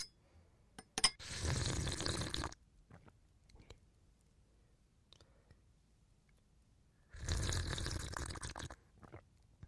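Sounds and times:
person slurping whiskey: 0:01.2 - 0:02.6, 0:07.1 - 0:09.2.

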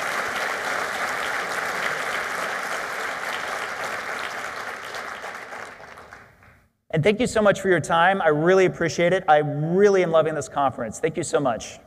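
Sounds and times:
audience round of applause: 0:00.0 - 0:06.6
speech: 0:07.0 - 0:11.8.

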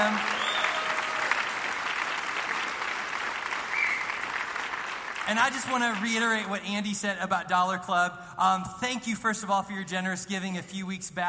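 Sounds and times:
audience applause: 0:00.0 - 0:06.5
speech: 0:05.3 - 0:11.2.

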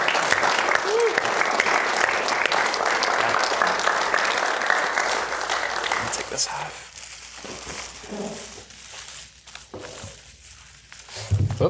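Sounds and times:
room full of people clapping: 0:00.0 - 0:06.8.

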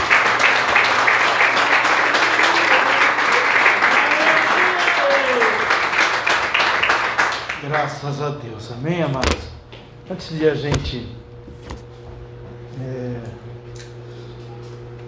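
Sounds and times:
audience clapping: 0:00.0 - 0:07.8
speech: 0:07.8 - 0:09.5, 0:10.1 - 0:11.2, 0:12.8 - 0:13.4.

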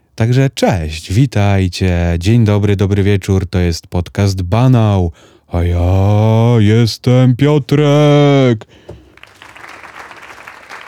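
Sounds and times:
speech: 0:00.2 - 0:08.9
applause: 0:09.1 - 0:10.8.

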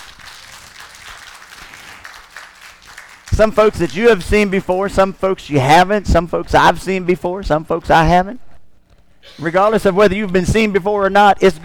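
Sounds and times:
audience hand clapping: 0:00.0 - 0:04.9
speech: 0:03.4 - 0:08.4, 0:09.2 - 0:11.6.

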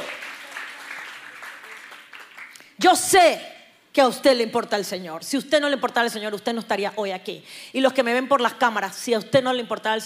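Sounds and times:
large audience applauding: 0:00.0 - 0:02.6
speech: 0:02.8 - 0:10.0.

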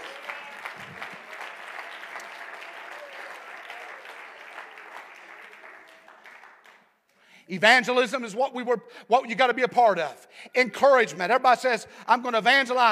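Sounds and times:
audience clapping hands: 0:00.0 - 0:07.1
speech: 0:07.5 - 0:12.8.

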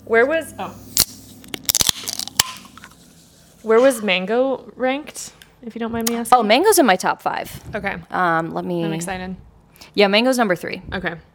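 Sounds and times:
speech: 0:00.1 - 0:01.0, 0:03.6 - 0:11.3
cranberry and blood orange drink cans being cracked open: 0:01.0 - 0:03.0.

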